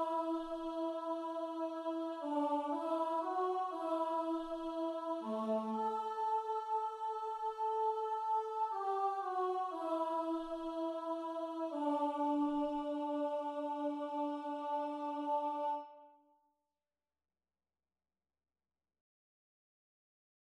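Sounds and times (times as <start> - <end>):
soprano singing in a choral setting: 0.0 - 16.0.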